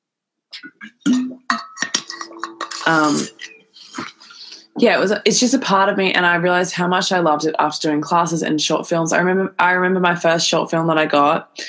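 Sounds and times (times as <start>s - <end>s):
glass clinking while drinking water: 0.9s - 4.5s
speech: 1.0s - 1.3s, 2.9s - 3.4s, 4.8s - 11.6s.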